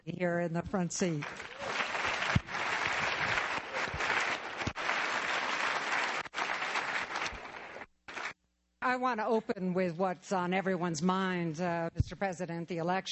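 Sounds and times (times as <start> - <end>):
speech: 0.2 - 1.6, 8.9 - 13.1
audience applause: 1.2 - 8.4.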